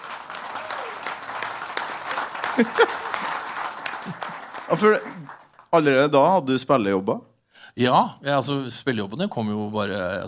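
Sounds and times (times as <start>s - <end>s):
audience applause: 0.0s - 5.8s
laughter: 0.4s - 5.3s
speech: 2.6s - 3.0s, 4.7s - 10.2s.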